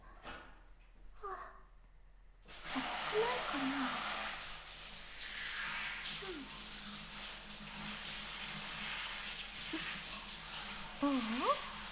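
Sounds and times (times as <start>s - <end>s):
water pouring to rinse soap foam off in a bath: 2.5s - 11.9s
speech: 11.0s - 11.7s.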